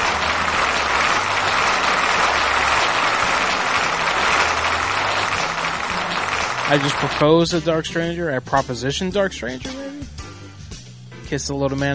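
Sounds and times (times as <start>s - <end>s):
crowd applause: 0.0s - 7.7s
speech: 6.7s - 9.8s, 11.3s - 11.9s.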